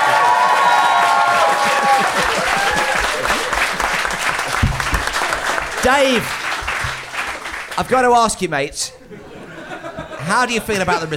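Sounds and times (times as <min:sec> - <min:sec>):
audience applause: 0:00.0 - 0:08.1
laughter: 0:00.1 - 0:05.8, 0:08.9 - 0:11.1
speech: 0:05.8 - 0:06.4, 0:07.8 - 0:09.2, 0:10.2 - 0:11.1.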